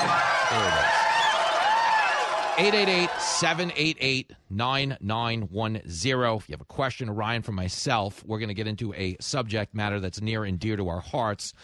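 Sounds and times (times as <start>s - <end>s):
shrill whistles: 0.0s - 2.3s
people shouting: 0.0s - 3.3s
crowd cheering: 0.0s - 4.0s
speech: 2.6s - 11.6s.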